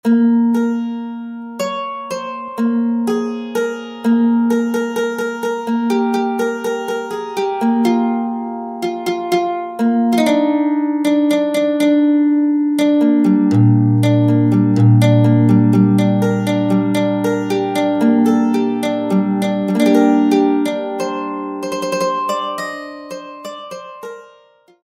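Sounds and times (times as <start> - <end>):
mandolin: 0.0 - 24.8.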